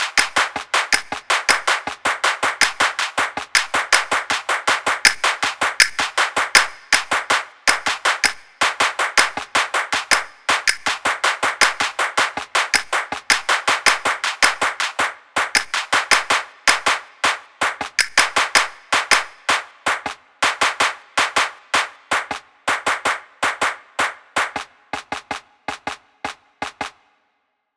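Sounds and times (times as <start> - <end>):
rhythmic hand clapping music: 0.0 - 27.0.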